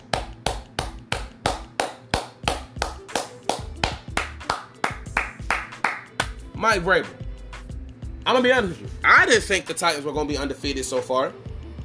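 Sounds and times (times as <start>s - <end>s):
hand clapping: 0.0s - 6.4s
speech: 6.6s - 7.2s, 8.2s - 11.4s.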